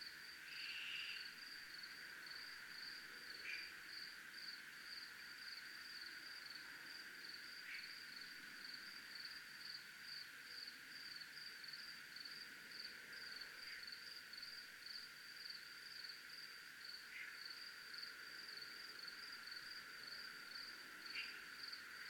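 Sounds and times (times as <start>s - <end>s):
cricket trilling: 0.2s - 22.0s.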